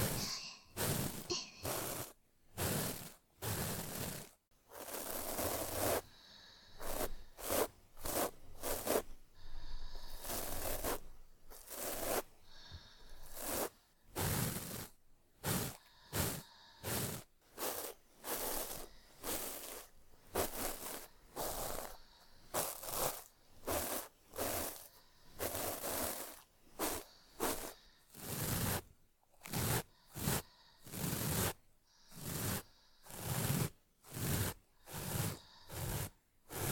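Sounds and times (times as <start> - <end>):
ear cleaning recorded with binaural microphone: 0.0 - 36.7.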